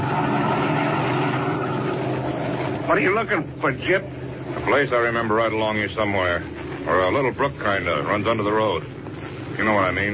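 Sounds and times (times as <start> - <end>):
black sedan car slowing down on road: 0.0 - 6.0
speech: 2.9 - 9.0, 9.6 - 10.1.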